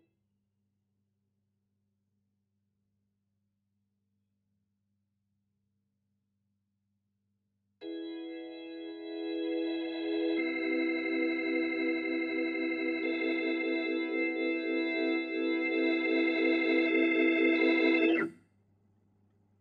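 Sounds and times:
Hammond organ: 0:07.8 - 0:18.3.

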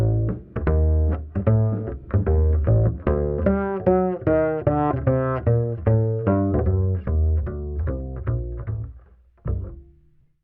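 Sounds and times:
ragtime bass line: 0:00.0 - 0:09.9.

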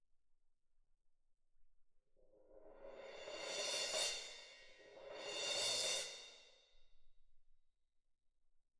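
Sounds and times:
percussion: 0:02.4 - 0:07.0.

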